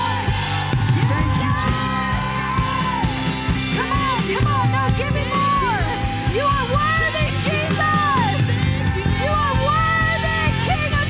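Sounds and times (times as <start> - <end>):
audience cheering: 0.0 - 11.0.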